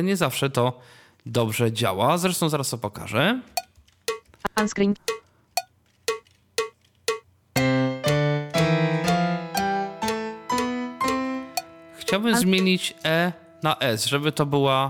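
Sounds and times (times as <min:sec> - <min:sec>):
speech: 0:00.0 - 0:03.6, 0:04.5 - 0:05.2, 0:12.1 - 0:14.8
electronic keyboard notes: 0:06.1 - 0:14.4.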